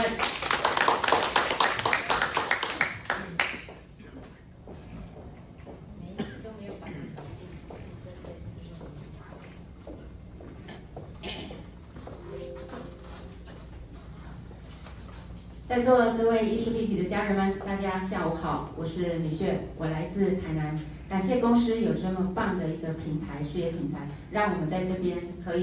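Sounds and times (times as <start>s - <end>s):
audience applause: 0.2s - 3.6s
speech: 15.8s - 25.6s.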